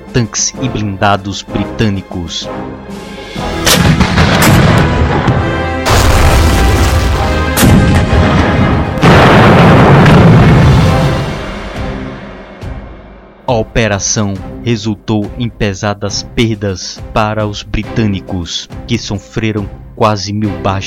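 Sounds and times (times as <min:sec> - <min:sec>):
speech: 0:00.2 - 0:02.7, 0:13.5 - 0:20.8
Fleck 88 anti-aircraft cannon fire: 0:03.6 - 0:11.6.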